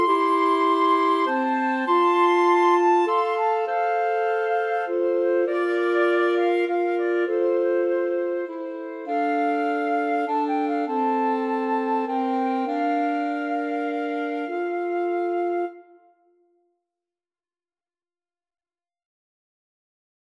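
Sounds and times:
flexible mixed ensemble of three players playing: 0.0 - 15.8.

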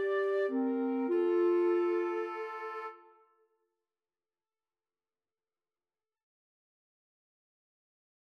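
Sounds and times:
two flutes: 0.0 - 3.3
clarinet: 0.0 - 3.4.

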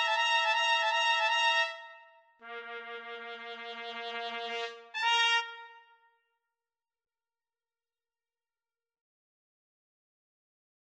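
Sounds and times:
two trumpets: 0.0 - 6.1.

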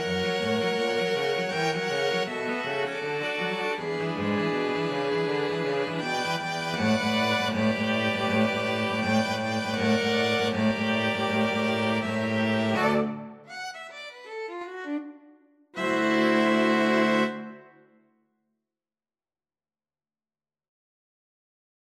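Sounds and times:
string quartet playing a jazzy birthday song: 0.0 - 13.4, 15.8 - 17.6.

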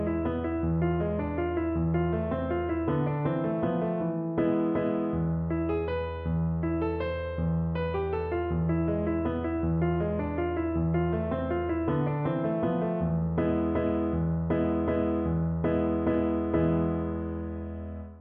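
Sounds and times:
piano piece: 0.0 - 18.1.

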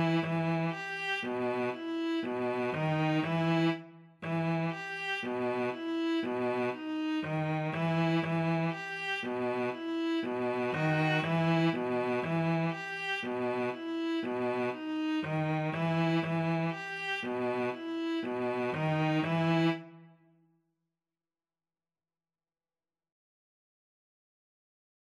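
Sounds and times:
string trio playing a bulgarish: 0.0 - 20.0.

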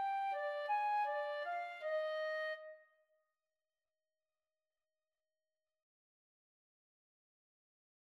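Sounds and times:
flute and clarinet duet melody: 0.0 - 2.8.

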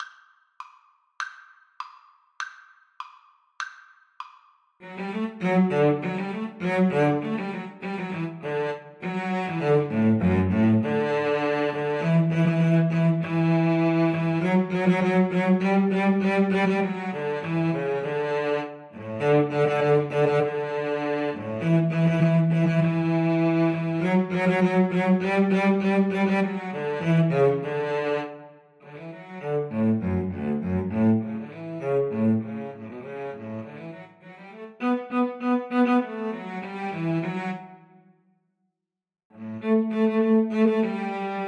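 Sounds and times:
cello duet: 4.8 - 38.0, 39.3 - 41.4.

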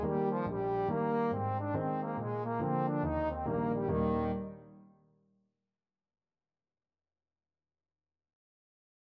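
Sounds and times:
trombone tune: 0.0 - 4.7.

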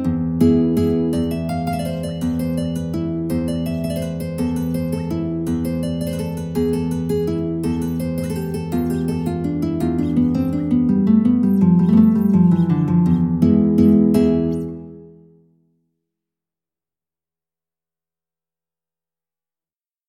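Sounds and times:
guitar piece: 0.0 - 15.6.

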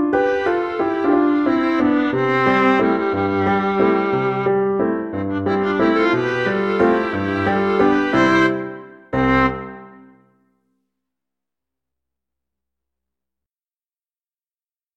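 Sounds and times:
viola duet: 0.2 - 10.1.

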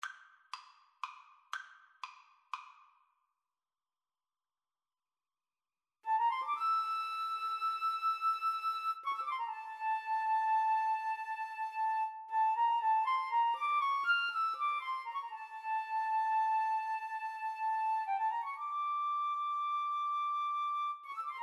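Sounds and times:
flute: 6.0 - 21.4.

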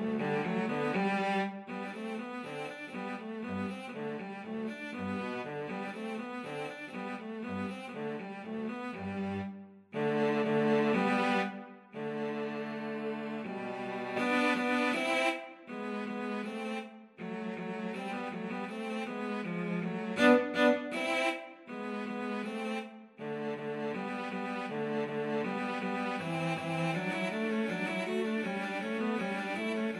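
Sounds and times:
cello duet: 0.0 - 29.9.

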